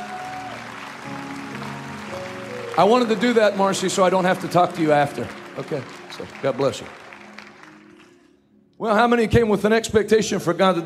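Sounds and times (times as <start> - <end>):
crowd clapping: 0.0 - 8.4
speech: 2.8 - 7.0, 8.8 - 10.8.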